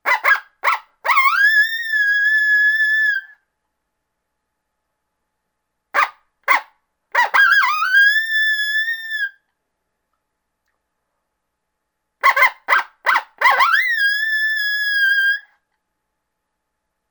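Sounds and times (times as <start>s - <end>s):
coyote greeting call with barks and howl: 0.0s - 3.3s, 6.0s - 9.3s, 12.2s - 15.4s.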